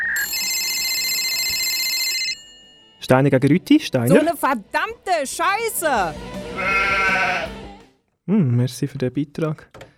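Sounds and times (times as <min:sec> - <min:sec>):
phone ringing: 0:00.2 - 0:03.2
speech: 0:03.1 - 0:07.0, 0:08.3 - 0:09.8.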